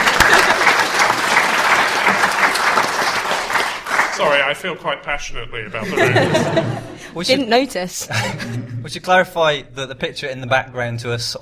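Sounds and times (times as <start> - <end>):
laughter: 0.0 - 2.9, 5.7 - 7.3, 8.0 - 9.0
audience applause: 0.0 - 4.5
speech: 4.2 - 11.4.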